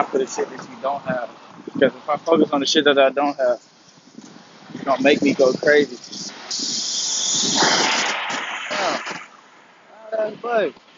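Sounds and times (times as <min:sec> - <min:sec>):
speech: 0:00.0 - 0:03.7, 0:04.8 - 0:06.8, 0:10.1 - 0:10.9
bus air brakes hissing: 0:05.9 - 0:09.3.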